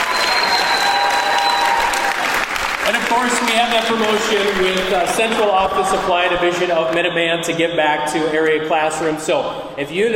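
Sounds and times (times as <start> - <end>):
audience applause for a guest: 0.0 - 6.2
speech: 2.9 - 10.1.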